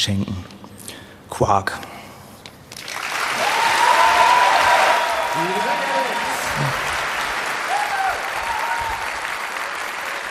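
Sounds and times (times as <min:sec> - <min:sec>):
speech: 0:00.0 - 0:00.5, 0:01.3 - 0:01.9
audience applause at a German stage event: 0:02.8 - 0:10.2.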